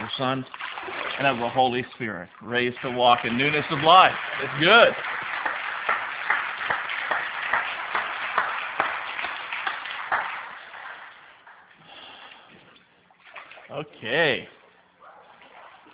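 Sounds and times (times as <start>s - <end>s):
speech: 0.2s - 5.1s, 13.8s - 14.6s
crowd clapping and cheering: 2.8s - 11.7s.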